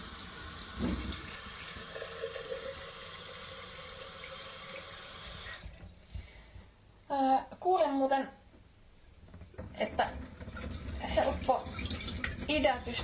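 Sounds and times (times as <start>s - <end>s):
tap water running while rinsing sprouts: 0.0s - 6.0s, 9.3s - 13.0s
speech: 0.8s - 1.2s, 8.1s - 8.4s, 12.6s - 13.0s
splashes and knocks: 0.8s - 1.3s, 9.3s - 13.0s.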